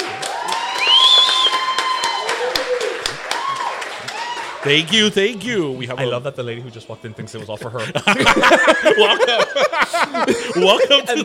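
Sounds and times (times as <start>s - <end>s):
live audience applause at a show in downtown Westchester: 0.0s - 5.6s
whoop or whistle: 0.3s - 4.6s
speech: 4.6s - 11.2s
laughter: 7.2s - 11.2s.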